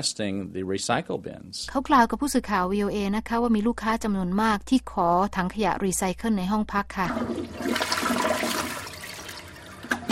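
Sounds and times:
speech: 0:00.0 - 0:08.1
water-saving toilet flushing: 0:07.0 - 0:10.1.

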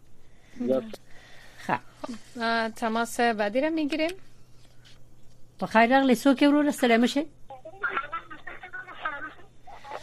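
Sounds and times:
speech: 0:00.6 - 0:04.3, 0:05.6 - 0:07.4
radio playing behind a phone caller on a call-in line: 0:07.8 - 0:10.0.

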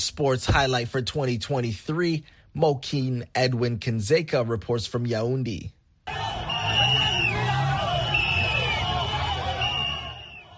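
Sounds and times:
speech: 0:00.0 - 0:05.8
arena crowd cheering and chatter: 0:06.1 - 0:10.5
shrill whistle-like tones: 0:06.1 - 0:10.5
fans applauding in arena: 0:06.2 - 0:10.5.

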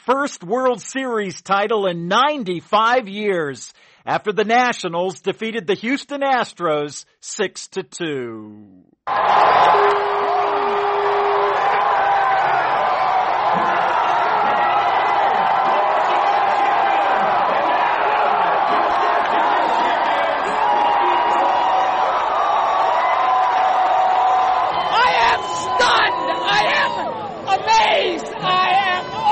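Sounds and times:
speech: 0:00.1 - 0:10.4
baseball fans at Nationals Park cheering a World Series win: 0:09.1 - 0:29.2.

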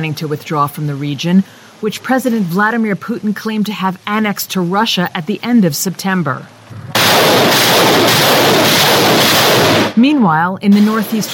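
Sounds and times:
speech: 0:00.0 - 0:08.8, 0:09.6 - 0:11.3
rocket fire by Ukrainian forces near Kharkiv at Russian positions: 0:06.6 - 0:10.0.

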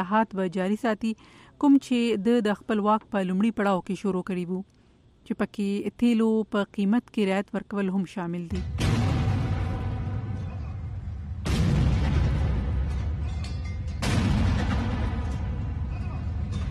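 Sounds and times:
speech: 0:00.0 - 0:08.8
army unit firing a 21-gun cannon salute after a presidential swearing-in: 0:08.6 - 0:16.5.

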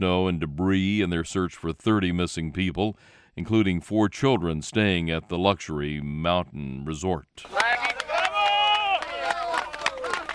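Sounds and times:
speech: 0:00.0 - 0:07.8
rescuers cheering: 0:07.4 - 0:10.3.

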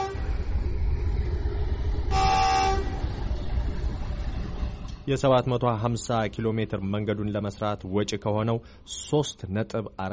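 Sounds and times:
train horn: 0:00.0 - 0:00.3, 0:02.1 - 0:03.0
train wagons rolling on the Ethio-Djibouti railway: 0:00.0 - 0:10.0
speech: 0:05.1 - 0:10.1.

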